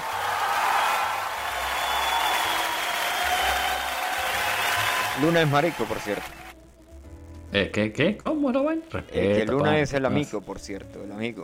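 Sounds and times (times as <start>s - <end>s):
audience applause: 0.0s - 6.6s
speech: 5.2s - 6.4s, 7.5s - 11.4s.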